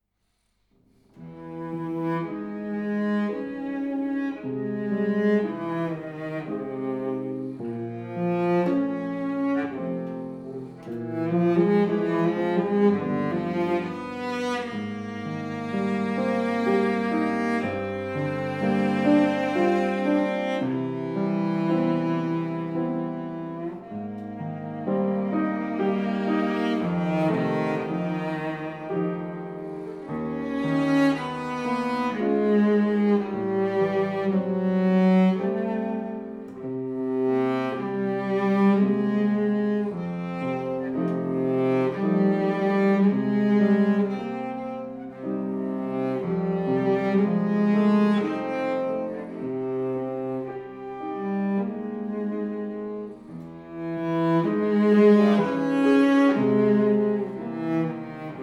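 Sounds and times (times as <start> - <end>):
pianoforte: 0.0 - 58.4.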